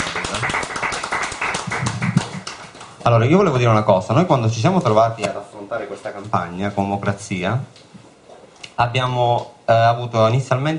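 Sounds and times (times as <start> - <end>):
audience applause at a presentation: 0.0 - 3.1
speech: 3.1 - 7.9, 8.8 - 10.7.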